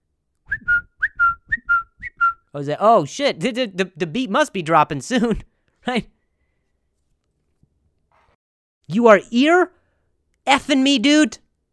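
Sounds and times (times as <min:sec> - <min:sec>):
whistling text message notification sound: 0:00.5 - 0:02.5
speech: 0:02.6 - 0:06.2, 0:08.9 - 0:09.8, 0:10.4 - 0:11.4.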